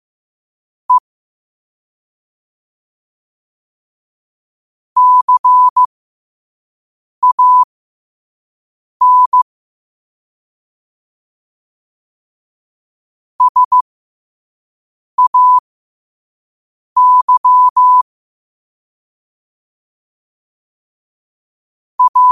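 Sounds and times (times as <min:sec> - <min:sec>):
morse code at 5 wpm: 0:05.0 - 0:05.9, 0:07.2 - 0:07.7, 0:09.0 - 0:09.4, 0:13.4 - 0:13.8, 0:15.2 - 0:15.6, 0:17.0 - 0:18.0, 0:22.0 - 0:22.3.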